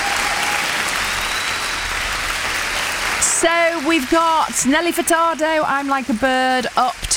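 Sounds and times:
applause from a sizable crowd: 0.0 - 5.6
speech: 3.4 - 7.1.

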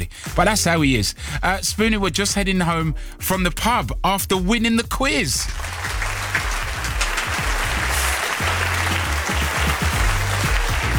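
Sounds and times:
speech: 0.4 - 5.9
crowd applause: 5.4 - 10.9.

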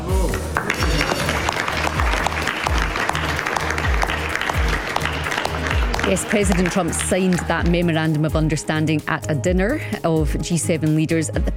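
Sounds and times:
applause at a G7 leaders' dinner at the Palace of Versailles: 0.3 - 8.2
speech: 6.1 - 11.5.

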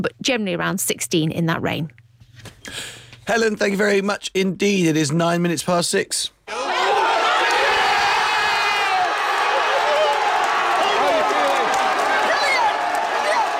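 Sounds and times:
speech: 0.0 - 2.0, 2.6 - 6.4
large football crowd cheering and roaring: 6.5 - 13.5.

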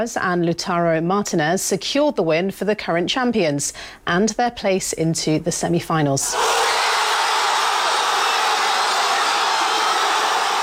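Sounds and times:
speech: 0.0 - 6.8
football fans cheering in the streets: 6.3 - 10.6.

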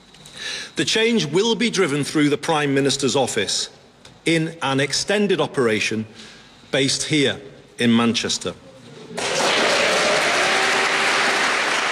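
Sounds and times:
speech: 0.8 - 8.6
audience applause: 9.2 - 11.9.

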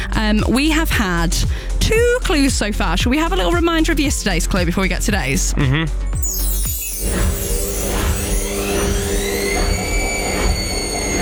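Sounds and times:
speech: 0.2 - 6.2
washing machine on spin cycle: 6.2 - 11.1.

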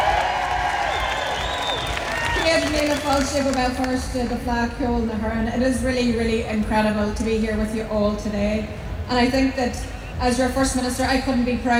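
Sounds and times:
crowd cheering: 0.0 - 4.0
speech: 2.7 - 11.7.

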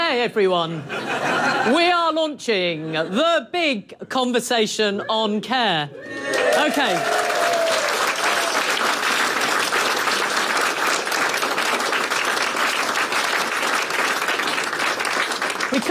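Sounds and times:
speech: 0.1 - 7.3
laughter: 0.7 - 1.8
audience applause: 6.1 - 15.8.

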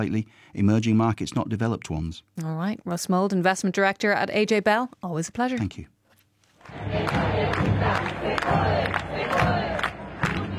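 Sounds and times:
speech: 0.0 - 6.0
street protest crowd chanting: 6.6 - 10.5.

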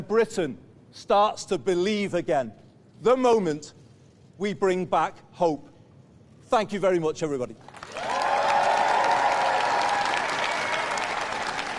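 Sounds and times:
speech: 0.0 - 3.8, 4.4 - 5.7, 6.5 - 8.1
audience applause after Prime Minister Burnham's first speech: 7.7 - 11.7.

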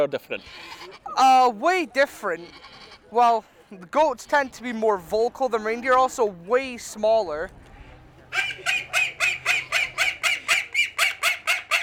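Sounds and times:
speech: 0.0 - 7.6
chickens clucking in a poultry tent: 0.3 - 1.4, 2.3 - 3.3, 7.7 - 11.8.

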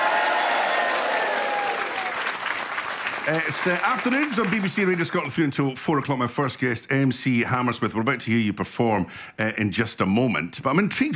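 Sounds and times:
live audience applauding: 0.0 - 5.3
speech: 3.2 - 11.1.

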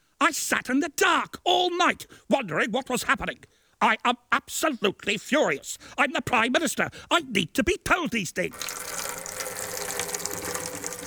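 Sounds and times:
speech: 0.3 - 9.1
hissing trickle of liquid as a sound effect of someone wetting themselves: 8.5 - 11.0.

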